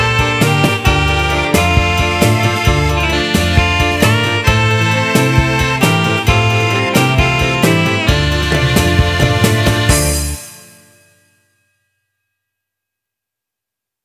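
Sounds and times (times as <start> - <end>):
tango beguine music: 0.0 - 11.1.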